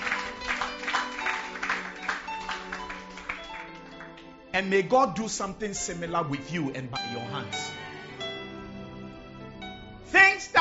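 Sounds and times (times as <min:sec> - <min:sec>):
audience clapping hands: 0:00.0 - 0:04.7
speech: 0:04.6 - 0:07.8.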